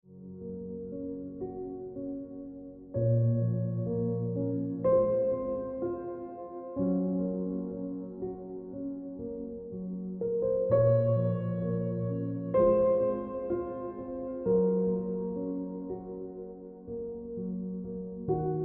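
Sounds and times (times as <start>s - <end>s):
piano ringtone music: 0.1s - 18.6s.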